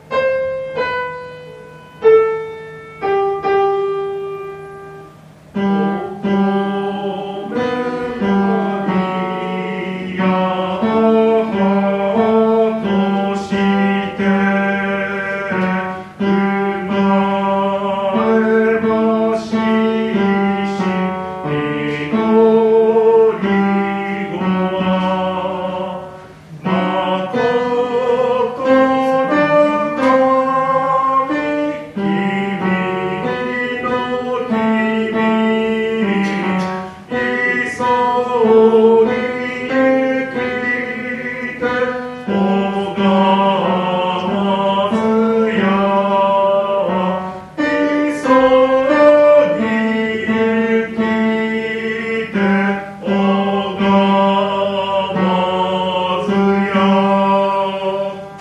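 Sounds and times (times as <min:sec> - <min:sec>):
tenor singing: 0:00.0 - 0:58.3.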